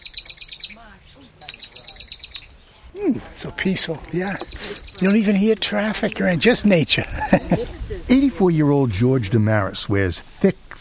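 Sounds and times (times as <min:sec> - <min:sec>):
marsh wren chipping call: 0:00.0 - 0:02.6, 0:04.2 - 0:05.4
speech: 0:03.0 - 0:10.7
laughter: 0:07.0 - 0:08.0.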